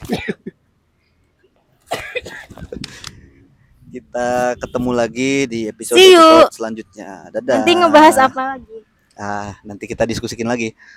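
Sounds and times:
person coughing: 0.0s - 0.5s, 1.9s - 2.6s
speech: 4.2s - 10.9s.

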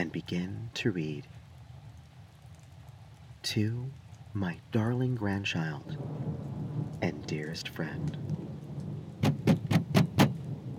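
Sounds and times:
speech: 0.0s - 1.4s, 3.4s - 8.5s
bang at the door: 9.2s - 10.4s.

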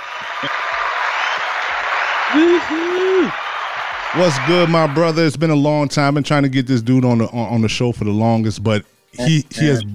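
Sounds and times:
tonal hoots or whoops: 0.0s - 4.3s
applause: 0.0s - 5.3s
speech: 0.4s - 0.6s, 2.3s - 3.4s, 4.1s - 9.9s.

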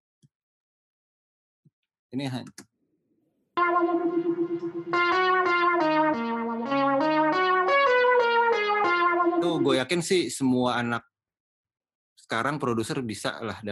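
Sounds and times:
speech: 2.1s - 2.7s, 9.4s - 11.1s, 12.3s - 13.6s
analog keyboard lead intro recorded with a microphone: 3.6s - 10.0s.

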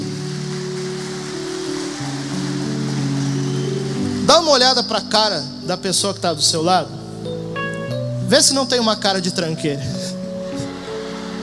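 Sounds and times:
audience applauding: 0.0s - 5.2s, 10.4s - 11.4s
sustained low keyboard chords: 0.0s - 11.4s
speech: 4.3s - 7.0s, 8.3s - 10.0s.

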